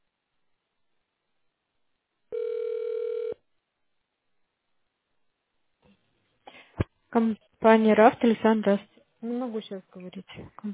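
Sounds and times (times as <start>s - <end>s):
telephone ringback tone while on hold: 2.3s - 3.4s
speech: 7.1s - 10.7s.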